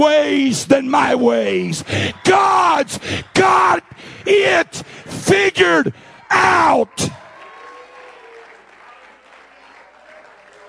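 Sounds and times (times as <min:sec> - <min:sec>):
speech: 0:00.0 - 0:07.2
audience clapping hands: 0:06.8 - 0:10.6.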